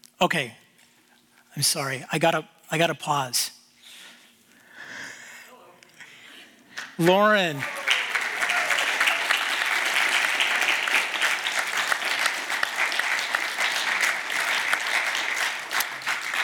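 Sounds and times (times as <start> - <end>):
speech: 0.2 - 0.6, 1.6 - 3.4, 7.0 - 7.8
audience clapping: 6.8 - 16.4.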